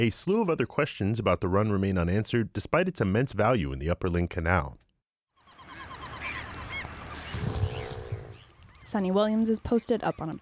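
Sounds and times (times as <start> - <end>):
speech: 0.0 - 4.8, 8.9 - 10.3
cacophony of birds circling above water: 5.4 - 10.3.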